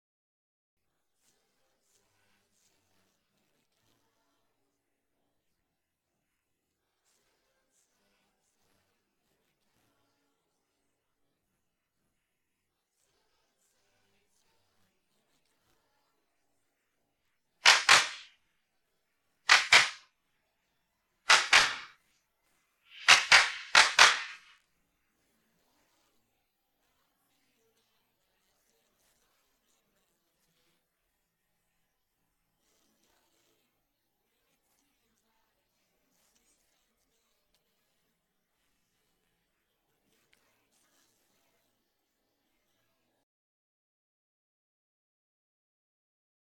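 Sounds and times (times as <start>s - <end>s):
drums: 17.6s - 18.3s, 19.5s - 20.0s, 21.3s - 21.9s, 22.9s - 24.5s.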